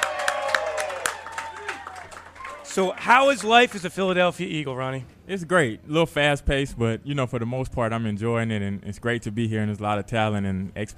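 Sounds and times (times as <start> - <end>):
studio applause welcoming a new Philadelphia Eagles running back: 0.0 - 3.9
speech: 2.8 - 10.9.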